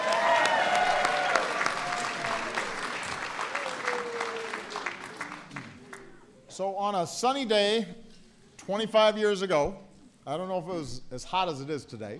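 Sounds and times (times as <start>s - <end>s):
audience applause: 0.0s - 6.1s
speech: 6.6s - 8.0s, 8.7s - 12.1s.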